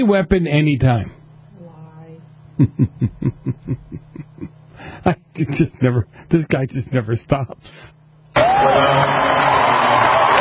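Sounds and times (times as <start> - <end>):
speech: 0.0 - 1.2, 2.6 - 10.2
laughter: 2.6 - 5.8
crowd cheering: 8.3 - 10.3.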